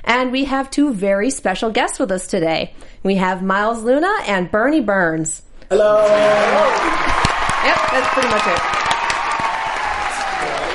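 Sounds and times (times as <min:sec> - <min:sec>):
speech: 0:00.2 - 0:08.8
crowd noise: 0:05.8 - 0:10.7
audience applause at a screening at the Alamo in Austin: 0:05.9 - 0:10.7.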